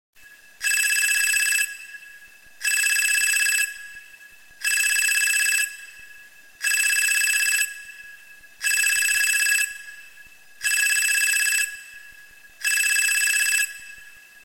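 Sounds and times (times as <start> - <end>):
iPhone 12 ringtone: 0.6 - 1.8, 2.6 - 3.8, 4.6 - 5.8, 6.6 - 7.8, 8.6 - 9.9, 10.6 - 11.8, 12.6 - 14.0.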